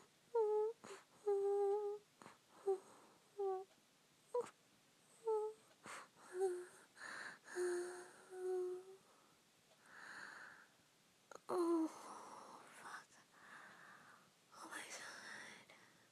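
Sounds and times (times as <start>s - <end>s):
woman whimpering: 0.4s - 3.6s, 5.2s - 9.0s.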